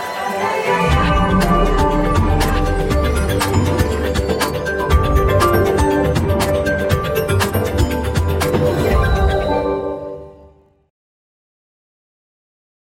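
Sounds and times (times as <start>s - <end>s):
soul music: 0.2s - 9.8s.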